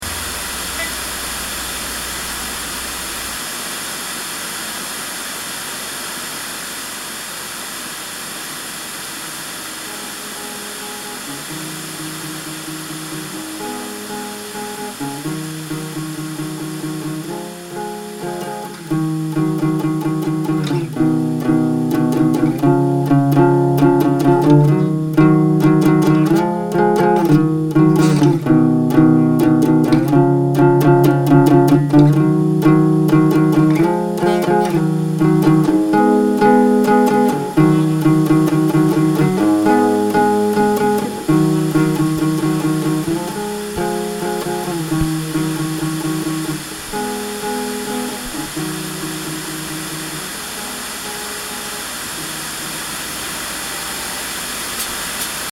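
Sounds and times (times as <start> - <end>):
blues music: 9.9 - 52.8.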